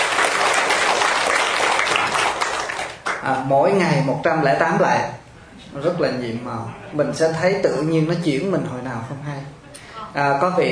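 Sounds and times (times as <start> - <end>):
audience applause: 0.0 - 3.2
speech: 3.2 - 10.7.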